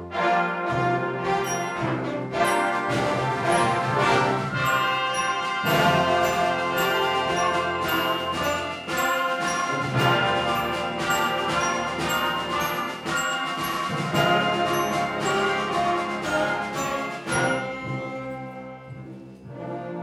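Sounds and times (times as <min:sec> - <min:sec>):
band playing: 0:00.2 - 0:19.8
bells ringing: 0:01.5 - 0:19.0.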